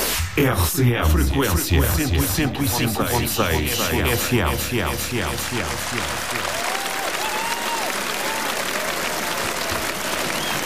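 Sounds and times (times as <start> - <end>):
speech: 0.4 - 6.6
crowd applauding the radio team at a live stage event: 5.4 - 10.6
whistles: 10.1 - 10.6.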